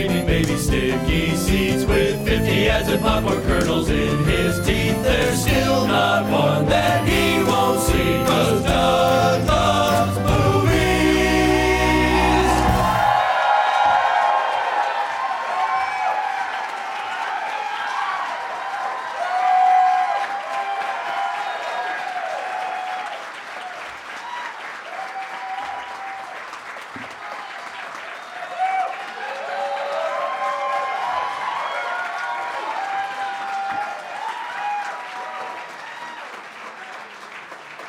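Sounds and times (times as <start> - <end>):
speech: 0.0 - 7.1
audience applause: 3.0 - 37.8
audience cheers and whoops: 11.9 - 37.1.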